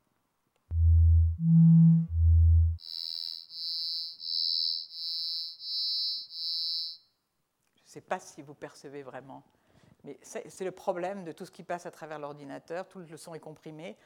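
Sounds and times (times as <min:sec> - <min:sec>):
pure tones: 0:00.7 - 0:02.8
speech: 0:08.0 - 0:14.0.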